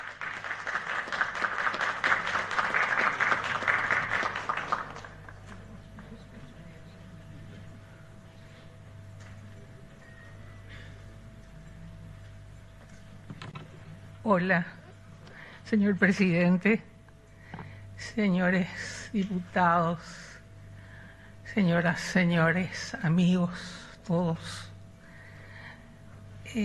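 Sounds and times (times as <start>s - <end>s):
loud dense crowd applause: 0.0s - 6.2s
low steady hum and tone: 0.0s - 26.6s
speech: 14.3s - 14.7s, 15.7s - 16.9s, 18.2s - 20.2s, 21.6s - 24.7s.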